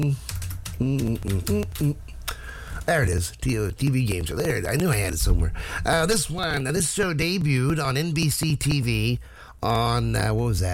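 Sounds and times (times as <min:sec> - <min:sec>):
typing a search on a computer keyboard: 0:00.0 - 0:02.0
speech: 0:00.8 - 0:02.1, 0:02.9 - 0:10.7.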